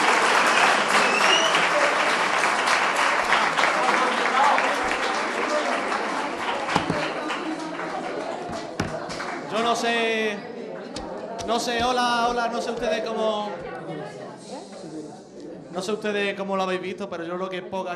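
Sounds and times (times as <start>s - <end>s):
audience applause: 0.0s - 10.0s
speech: 11.5s - 13.6s, 15.8s - 17.9s.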